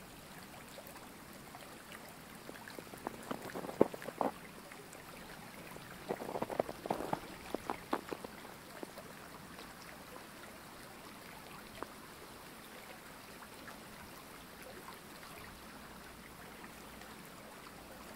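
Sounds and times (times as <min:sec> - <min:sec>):
creek flowing through snow-covered woodland: 0:00.0 - 0:18.1
footsteps crunching in snow: 0:06.1 - 0:08.3.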